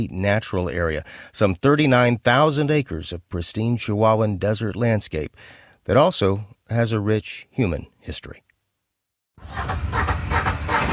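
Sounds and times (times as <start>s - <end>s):
speech: 0.0s - 8.4s, 9.4s - 10.1s
UTV engine starting up on a cloudy day in the Chihuahuan desert of South Presidio County: 9.4s - 10.9s.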